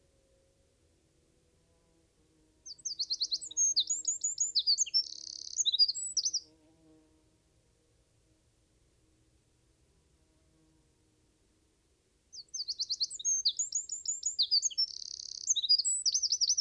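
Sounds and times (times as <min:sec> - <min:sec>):
Eurasian wren song of fast high tumbling notes and a ringing trill: 0:02.7 - 0:06.4, 0:12.4 - 0:16.5.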